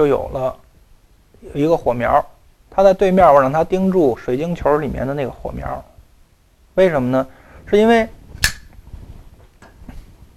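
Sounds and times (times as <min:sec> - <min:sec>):
speech: 0:00.0 - 0:00.6, 0:01.4 - 0:05.9, 0:06.8 - 0:08.2
lighter being flicked: 0:08.4 - 0:08.8.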